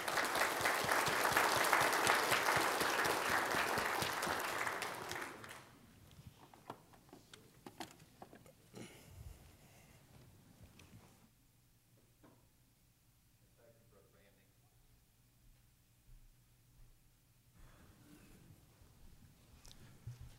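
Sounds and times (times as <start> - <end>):
audience applause at a church service: 0.0 - 5.7.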